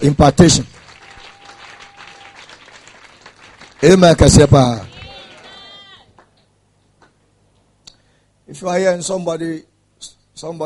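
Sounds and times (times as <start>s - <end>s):
speech: 0.0s - 0.8s, 3.8s - 4.9s, 8.5s - 10.6s
audience clapping: 0.2s - 6.4s.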